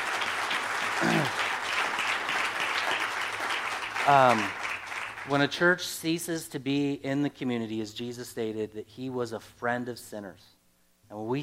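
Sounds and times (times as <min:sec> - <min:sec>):
audience applause: 0:00.0 - 0:05.3
speech: 0:04.0 - 0:04.6, 0:05.3 - 0:11.4.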